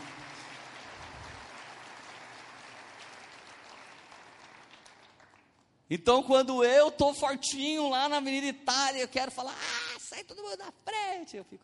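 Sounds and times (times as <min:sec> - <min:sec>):
audience applause: 0:00.0 - 0:05.6
speech: 0:05.9 - 0:11.6.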